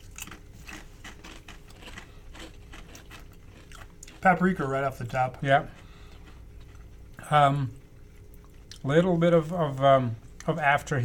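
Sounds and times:
barbecue-flavoured ruffled potato chips being bitten and chewed: 0.0s - 7.3s
speech: 4.2s - 5.8s, 7.3s - 7.8s, 8.8s - 11.0s.

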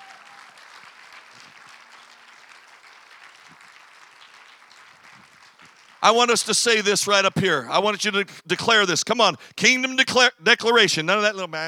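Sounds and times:
audience clapping: 0.0s - 6.8s
speech: 6.0s - 11.6s.

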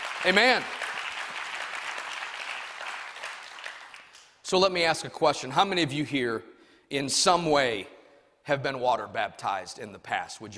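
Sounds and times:
audience clapping: 0.0s - 4.4s
speech: 0.2s - 0.8s, 4.5s - 10.5s.

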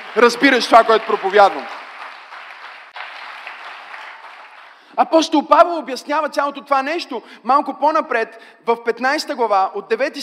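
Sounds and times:
audience clapping: 0.0s - 5.2s
speech: 0.2s - 1.8s, 5.0s - 10.2s.

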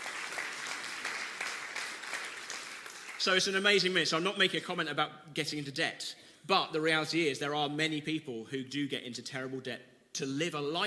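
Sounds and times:
crowd clapping: 0.0s - 3.9s
speech: 3.2s - 10.8s.

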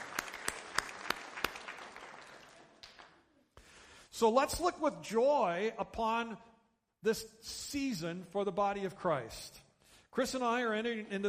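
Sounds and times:
audience applause: 0.0s - 3.4s
speech: 4.2s - 11.2s.

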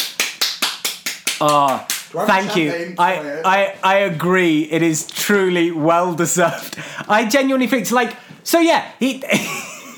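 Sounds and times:
one person clapping: 0.0s - 2.1s
speech: 1.4s - 9.6s.

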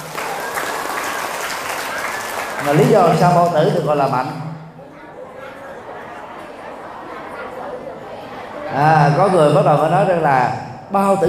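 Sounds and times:
audience applause: 0.0s - 3.8s
speech: 2.6s - 4.5s, 8.8s - 11.2s.

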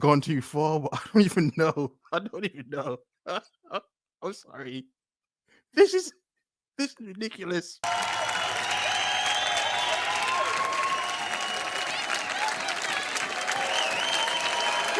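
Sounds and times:
speech: 0.0s - 5.0s, 5.7s - 6.2s, 6.8s - 8.2s
audience applause: 7.8s - 14.9s.

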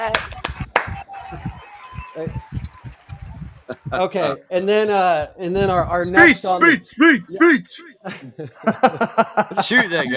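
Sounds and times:
speech: 0.0s - 0.4s, 2.2s - 2.6s, 3.9s - 10.1s
hand claps: 0.0s - 4.0s
laughter: 0.0s - 4.5s, 6.2s - 10.1s
voices cheering and chattering: 0.0s - 8.1s.

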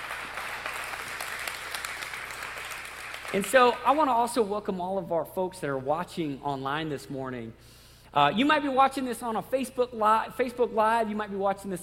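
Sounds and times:
church congregation applauding during a morning service: 0.0s - 3.9s
speech: 3.3s - 11.8s.

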